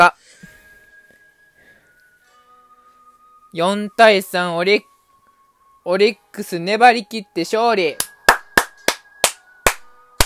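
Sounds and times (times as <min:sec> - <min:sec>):
speech: 0:03.6 - 0:04.9, 0:05.8 - 0:08.1
brief hand clapping: 0:08.0 - 0:10.2.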